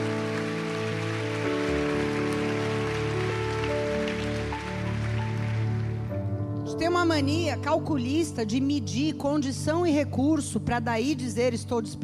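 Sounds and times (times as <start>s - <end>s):
audience applauding: 0.0s - 6.4s
speech: 6.9s - 12.0s.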